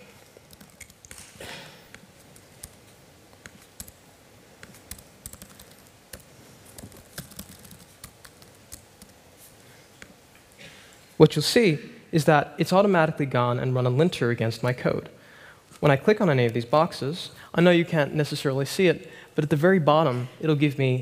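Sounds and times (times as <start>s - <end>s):
typing code on a computer keyboard: 0.4s - 1.3s, 1.9s - 4.0s, 4.6s - 9.2s
speech: 11.2s - 15.2s, 15.8s - 20.9s.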